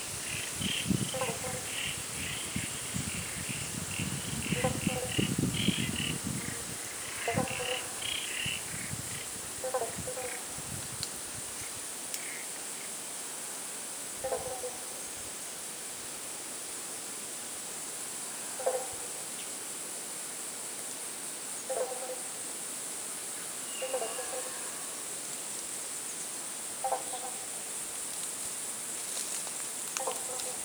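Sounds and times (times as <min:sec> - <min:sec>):
birds: 0:00.0 - 0:10.5
frogs: 0:00.0 - 0:10.8, 0:11.6 - 0:13.0, 0:14.1 - 0:15.2, 0:18.2 - 0:19.6, 0:21.5 - 0:22.6, 0:23.2 - 0:30.6.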